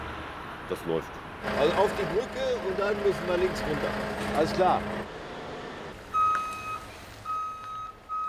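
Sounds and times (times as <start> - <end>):
speech: 0.7 - 5.2
heavy truck engine rumble: 1.4 - 8.1
heavy eight-axle transport truck backup alarm beeps: 6.1 - 8.2.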